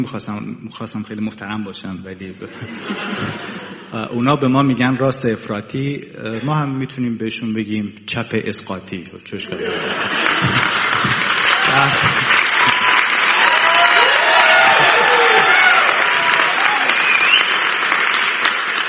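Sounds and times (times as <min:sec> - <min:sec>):
speech: 0:00.0 - 0:11.0
laughter: 0:02.4 - 0:04.0, 0:09.4 - 0:13.1, 0:14.6 - 0:16.4
audience applause: 0:09.7 - 0:18.8.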